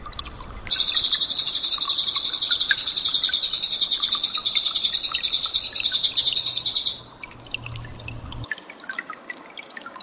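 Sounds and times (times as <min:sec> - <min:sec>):
bird song with dense rapid high-pitched trill: 0:00.7 - 0:07.1.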